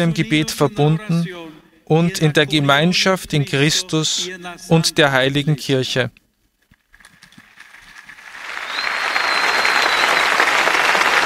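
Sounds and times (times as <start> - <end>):
speech: 0.0 - 6.2
crowd applause and clapping: 7.1 - 11.2.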